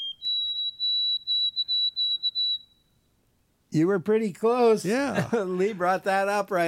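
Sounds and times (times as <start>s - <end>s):
white-throated sparrow song: 0.0s - 3.0s
speech: 3.7s - 6.6s.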